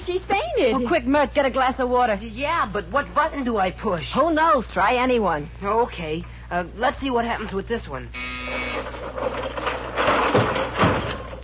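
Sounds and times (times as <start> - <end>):
speech: 0.1 - 8.6
furniture mechanism retracting into the wall: 8.4 - 11.4.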